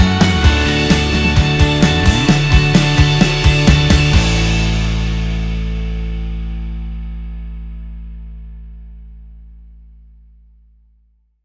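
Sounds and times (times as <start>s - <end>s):
inspiring and motivational instrumental music: 0.0s - 6.2s.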